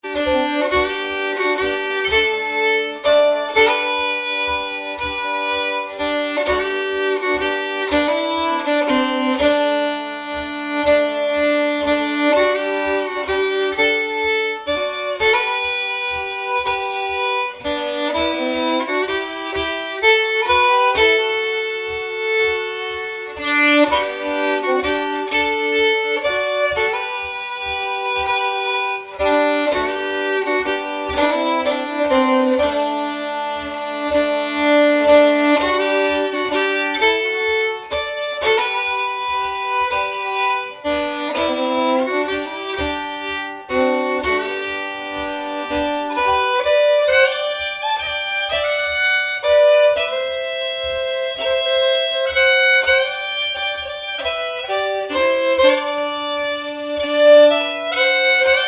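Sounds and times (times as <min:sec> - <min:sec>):
waltz music: 0:00.0 - 0:58.6.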